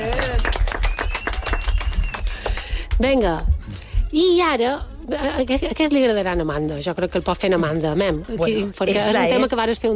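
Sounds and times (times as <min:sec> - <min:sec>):
group applause: 0:00.0 - 0:02.8
speech: 0:03.0 - 0:09.9.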